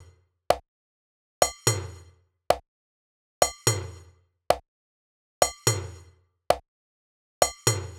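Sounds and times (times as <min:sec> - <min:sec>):
percussion loop at 120 bpm: 0:01.4 - 0:02.6, 0:03.4 - 0:04.6, 0:05.4 - 0:06.6, 0:07.4 - 0:07.9.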